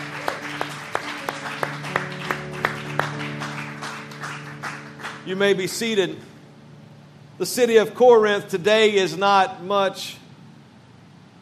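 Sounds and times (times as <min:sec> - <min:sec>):
audience hand clapping: 0:00.0 - 0:06.0
speech: 0:05.3 - 0:06.3, 0:07.4 - 0:10.2.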